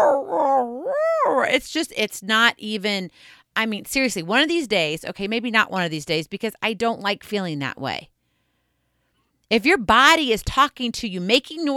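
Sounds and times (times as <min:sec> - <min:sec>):
voice imitating coyote howls: 0:00.0 - 0:01.5
speech: 0:01.4 - 0:08.1, 0:09.5 - 0:11.7.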